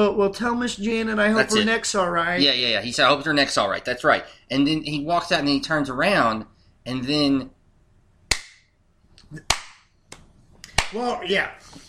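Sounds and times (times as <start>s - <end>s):
speech: 0.0s - 7.6s, 9.3s - 9.5s, 10.9s - 11.8s
hand claps: 8.3s - 8.6s, 9.2s - 11.0s.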